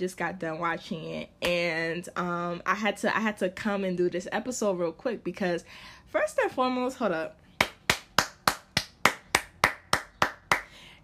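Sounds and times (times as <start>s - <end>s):
speech: 0.0s - 7.4s
hand clapping: 7.6s - 10.8s.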